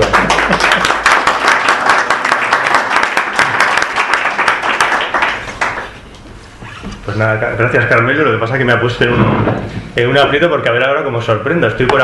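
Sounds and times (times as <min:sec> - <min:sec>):
audience applause: 0:00.0 - 0:06.0
speech: 0:07.1 - 0:12.0.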